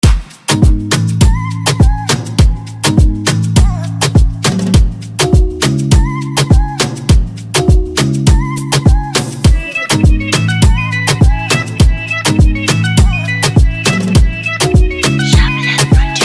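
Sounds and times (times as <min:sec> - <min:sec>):
instrumental music: 0:00.0 - 0:16.2.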